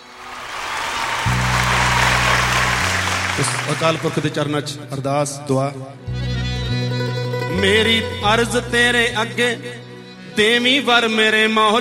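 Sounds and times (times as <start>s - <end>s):
loud audience applause at a religious gathering: 0.0s - 4.6s
speech: 3.4s - 6.9s, 7.6s - 9.8s, 10.4s - 11.8s.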